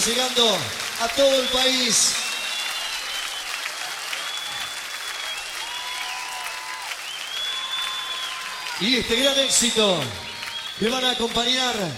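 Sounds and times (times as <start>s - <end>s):
speech: 0.0s - 2.2s, 8.8s - 11.9s
large live audience clapping along: 0.0s - 11.9s.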